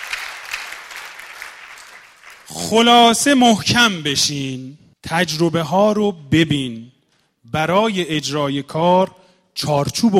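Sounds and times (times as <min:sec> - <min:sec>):
audience applause: 0:00.0 - 0:02.5
speech: 0:02.5 - 0:10.1.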